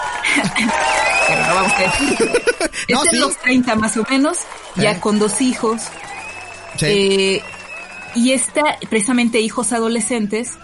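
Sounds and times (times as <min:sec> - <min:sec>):
cheering: 0:00.0 - 0:10.6
crowd applause: 0:00.0 - 0:10.6
overlapping voices: 0:00.0 - 0:10.6
speech: 0:00.4 - 0:06.1, 0:06.8 - 0:10.6
chuckles: 0:01.9 - 0:02.9.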